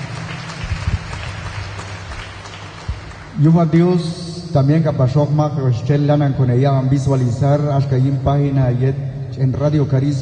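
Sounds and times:
audience applause: 0:00.0 - 0:03.5
speech: 0:03.4 - 0:10.2.

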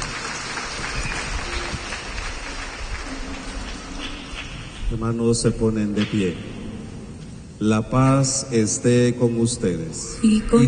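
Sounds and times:
audience applauding: 0:00.0 - 0:04.7
speech: 0:04.9 - 0:06.5, 0:07.6 - 0:10.6.

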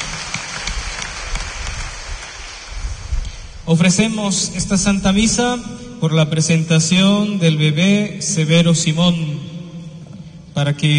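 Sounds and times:
audience clapping hands: 0:00.0 - 0:02.8
speech: 0:03.7 - 0:09.5, 0:10.6 - 0:10.9.

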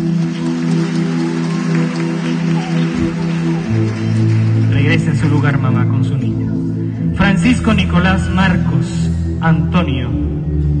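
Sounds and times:
crowd clapping: 0:00.0 - 0:08.0
speech: 0:05.4 - 0:06.4, 0:07.4 - 0:10.2.

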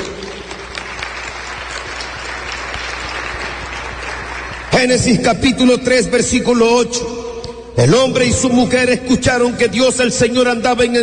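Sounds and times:
applause: 0:00.0 - 0:05.9
speech: 0:04.8 - 0:07.2, 0:07.8 - 0:11.0.

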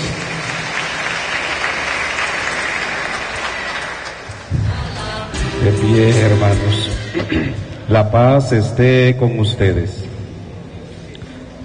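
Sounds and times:
congregation applauding in church during a Mass: 0:00.0 - 0:05.2
speech: 0:05.6 - 0:10.1.

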